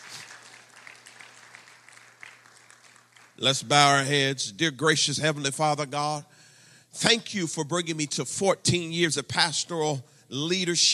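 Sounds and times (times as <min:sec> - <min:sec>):
audience clapping hands: 0:00.0 - 0:04.1
speech: 0:03.4 - 0:06.3, 0:06.9 - 0:10.9.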